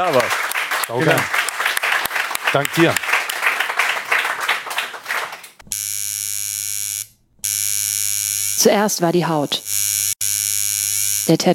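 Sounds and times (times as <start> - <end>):
speech: 0.0 - 1.4, 2.5 - 3.1, 8.6 - 9.6, 11.3 - 11.5
audience applause: 0.0 - 5.6.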